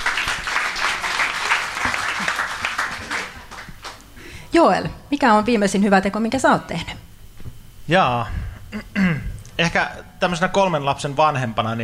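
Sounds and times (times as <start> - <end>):
crowd applause: 0.0 - 4.0
speech: 4.5 - 7.0, 7.9 - 11.8.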